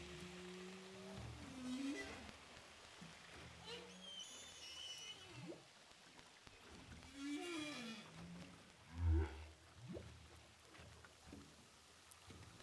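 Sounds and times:
humpback whale song recorded underwater with a hydrophone off Saint-Paul, Réunion: 0.0s - 2.4s, 3.6s - 5.7s, 6.9s - 9.6s.

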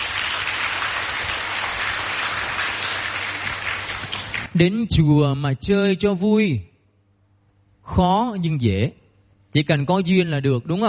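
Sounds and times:
applause: 0.0s - 4.6s
speech: 4.6s - 6.7s, 7.9s - 10.8s.

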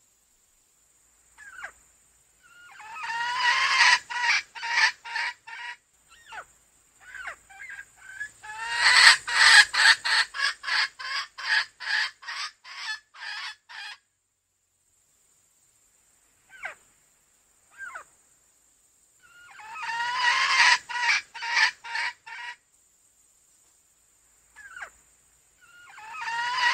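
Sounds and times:
female junglefowl clucking: 2.4s - 14.0s, 19.2s - 22.6s, 24.6s - 25.0s, 25.6s - 26.7s.

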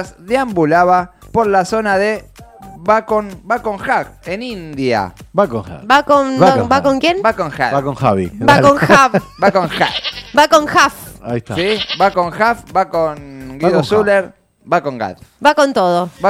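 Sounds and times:
speech: 0.0s - 16.2s
goat bleating: 9.7s - 10.5s, 11.5s - 12.2s.

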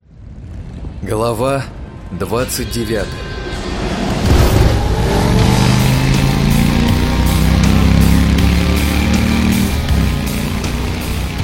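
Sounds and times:
speech: 1.0s - 3.3s
motorcycle engine revving and roaring: 3.5s - 11.4s.

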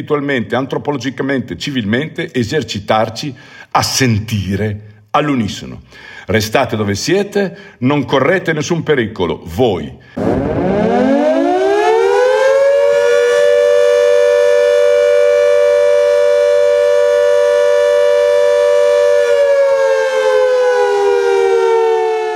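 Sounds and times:
speech: 0.0s - 11.0s
civil defense air raid siren sounded as a symbolic drill: 10.2s - 22.3s.

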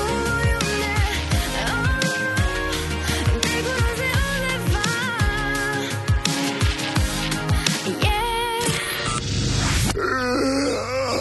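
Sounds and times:
dense steady musical background: 0.0s - 10.0s
drawn-out yawns with groaning voices: 9.9s - 11.1s.

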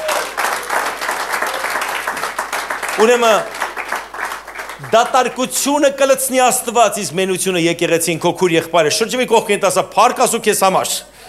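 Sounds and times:
church congregation clapping in worship: 0.0s - 6.1s
speech: 3.0s - 3.6s, 4.8s - 11.2s.

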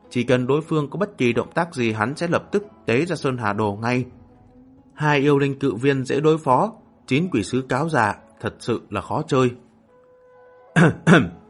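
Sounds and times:
speech: 0.1s - 4.2s, 5.0s - 9.6s, 10.8s - 11.4s
light cough: 10.8s - 11.4s.

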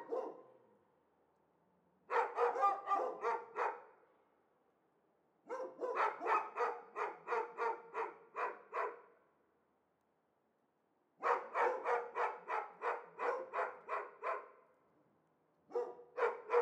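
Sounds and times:
dogs shut in cages barking excitedly: 0.0s - 0.5s, 2.1s - 3.9s, 5.5s - 9.1s, 11.2s - 14.6s, 15.7s - 16.6s.

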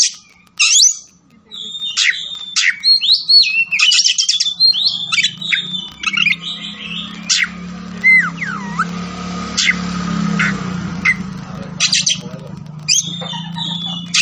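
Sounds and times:
Oriental magpie-robin singing: 0.0s - 14.2s.

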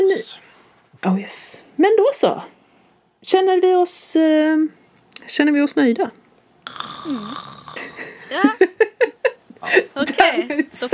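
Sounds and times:
speech: 0.0s - 2.6s, 3.2s - 8.9s, 9.6s - 10.9s
person imitating snoring: 6.7s - 8.2s.

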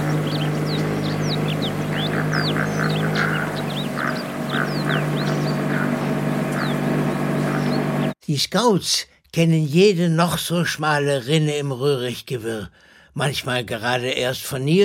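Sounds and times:
motorboat engine on water: 0.0s - 8.2s
speech: 8.3s - 14.8s.

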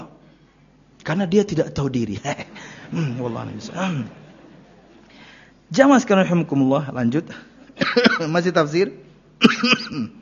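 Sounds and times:
speech: 1.1s - 4.2s, 5.7s - 10.1s
laughter: 2.4s - 5.2s
cough: 7.8s - 8.3s, 9.4s - 10.1s.

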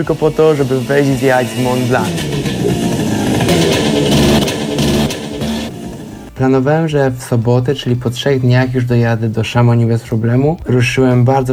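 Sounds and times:
speech: 0.0s - 2.8s, 6.4s - 11.5s
scooter engine revving: 0.0s - 6.4s.

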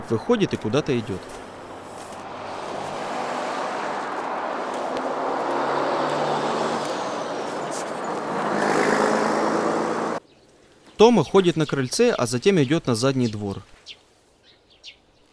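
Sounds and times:
truck engine rumbling as the truck slowly pulls up: 0.0s - 10.2s
speech: 0.1s - 1.5s, 11.0s - 13.7s.

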